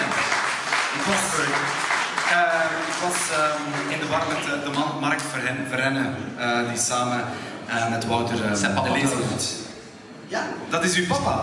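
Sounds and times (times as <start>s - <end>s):
audience applauding a guest arriving on stage: 0.0s - 5.5s
speech: 1.0s - 9.7s, 10.3s - 11.4s.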